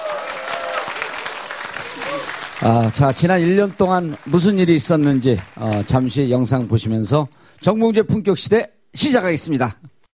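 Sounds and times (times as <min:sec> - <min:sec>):
audience applause: 0:00.0 - 0:06.8
speech: 0:02.6 - 0:09.9.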